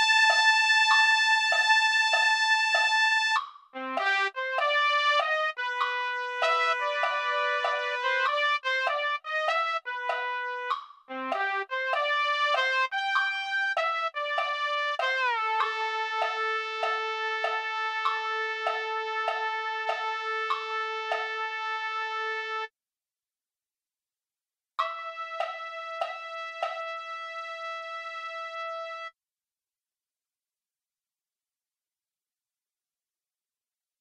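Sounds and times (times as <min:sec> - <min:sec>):
trumpet playing jazz tune: 0:00.0 - 0:22.7, 0:24.8 - 0:29.1.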